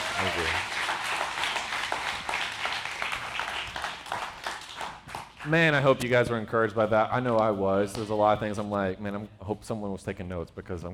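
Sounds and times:
audience applause: 0.0s - 5.6s
speech: 0.2s - 0.7s, 5.5s - 10.9s.

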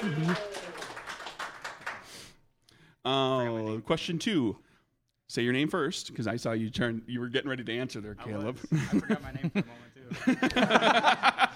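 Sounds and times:
laughter: 0.0s - 0.9s, 8.4s - 11.5s
small group clapping: 0.0s - 2.4s
speech: 0.1s - 0.6s, 3.0s - 4.7s, 5.3s - 11.4s.

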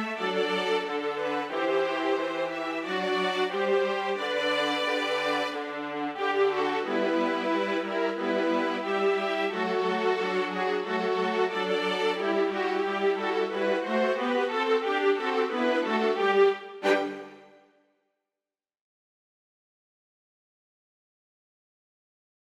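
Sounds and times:
chamber orchestra playing: 0.0s - 17.6s.

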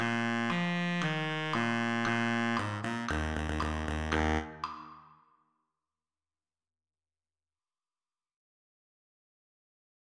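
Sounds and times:
solo baritone saxophone: 0.0s - 4.7s.

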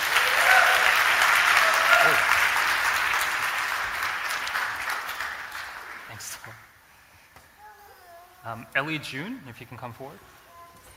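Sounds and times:
audience clapping: 0.0s - 6.8s
speech: 8.8s - 10.4s.

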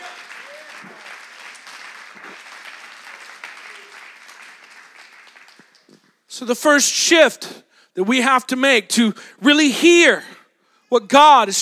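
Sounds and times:
audience applause: 0.0s - 6.0s
speech: 6.4s - 10.3s, 10.9s - 11.5s.

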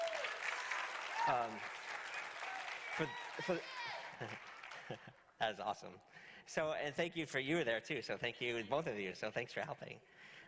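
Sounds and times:
audience applause: 0.0s - 5.0s
speech: 1.3s - 1.8s, 3.0s - 10.4s.

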